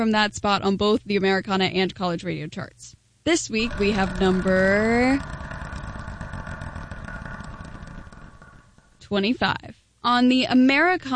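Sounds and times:
speech: 0.0 - 5.5, 9.1 - 11.1
wheel spun to pick a random number ticking: 3.5 - 9.1.

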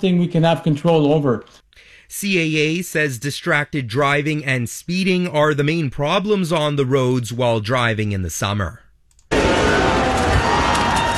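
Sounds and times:
speech: 0.0 - 8.8
Canadian fans cheering during Canada's FIFA World Cup match against South Africa: 9.3 - 11.1.

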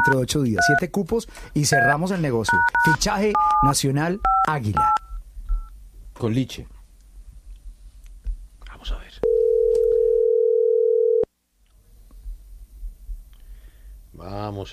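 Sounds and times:
speech: 0.0 - 5.0, 6.2 - 6.8, 14.2 - 14.7
telephone dial tone: 9.2 - 11.3.

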